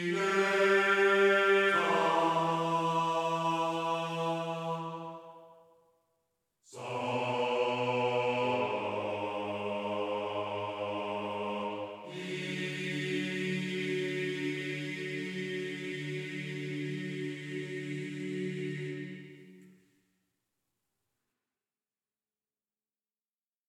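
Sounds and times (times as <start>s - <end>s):
church male choir singing in game audio: 0.0s - 5.4s, 6.7s - 19.6s.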